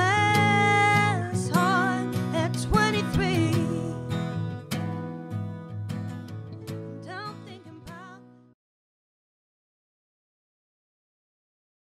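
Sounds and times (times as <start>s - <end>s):
acoustic duo playing a cover: 0.0s - 8.5s.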